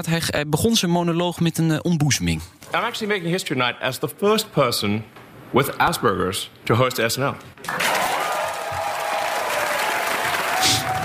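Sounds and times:
speech: 0.0 - 8.0
studio audience applauding: 7.6 - 11.0
faint cheers: 7.7 - 11.0.

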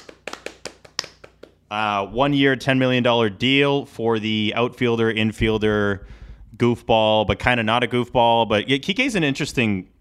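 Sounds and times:
hosts clapping hands: 0.0 - 1.6
speech: 1.7 - 9.9.

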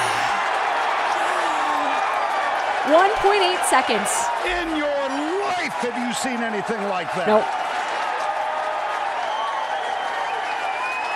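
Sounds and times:
large golf crowd applauding and cheering: 0.0 - 11.1
speech: 2.9 - 7.6
whistles and yells: 9.0 - 11.1.

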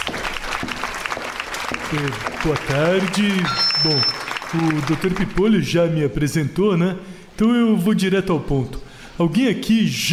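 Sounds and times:
audience applause: 0.0 - 5.5
speech: 1.9 - 10.1.

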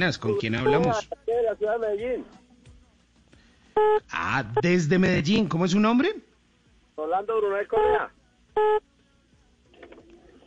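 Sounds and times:
speech: 0.0 - 2.4, 3.8 - 6.3, 7.0 - 8.9
electronic beep tone on a phone line: 0.6 - 1.0, 3.8 - 4.0, 8.6 - 8.8.

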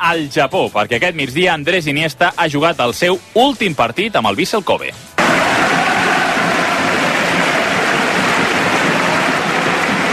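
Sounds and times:
speech: 0.0 - 5.1
stadium crowd ovation from Vissel Kobe supporters: 5.2 - 10.1.

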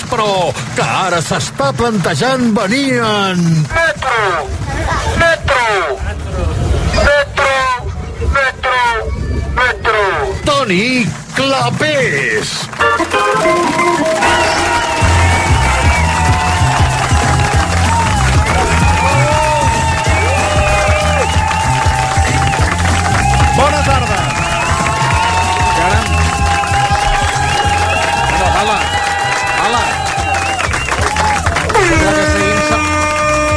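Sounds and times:
crowd cheering and applauding: 0.0 - 5.0, 10.4 - 33.5
speech: 0.1 - 7.4, 8.4 - 14.9.

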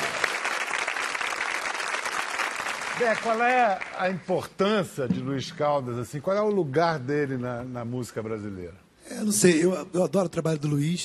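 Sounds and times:
audience applauding the music director of a Brazilian music TV programme: 0.0 - 4.3
speech: 3.0 - 11.0.

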